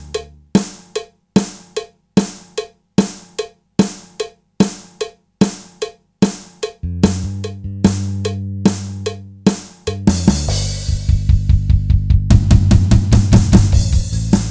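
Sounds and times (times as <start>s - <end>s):
backing music: 0.0s - 1.7s, 6.3s - 14.4s.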